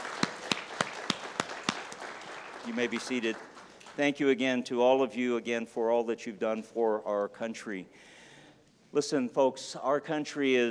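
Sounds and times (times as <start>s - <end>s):
crowd applause: 0.0s - 4.0s
sharp evenly spaced claps: 0.0s - 4.0s
speech: 2.6s - 8.1s, 8.9s - 10.6s.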